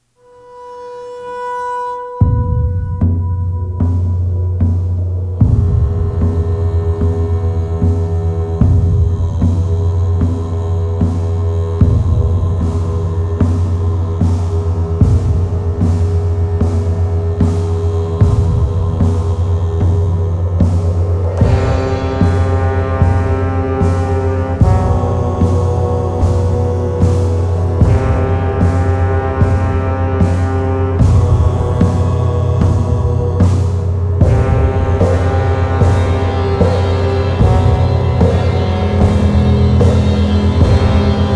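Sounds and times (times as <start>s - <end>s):
light epic trailer music: 2.2s - 41.3s.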